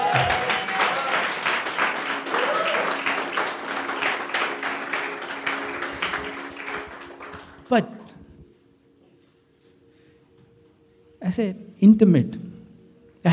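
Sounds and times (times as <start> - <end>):
faint voices and cheers: 0.0 - 3.9
crowd applauding: 0.0 - 8.2
speech: 7.7 - 8.0, 11.3 - 12.4.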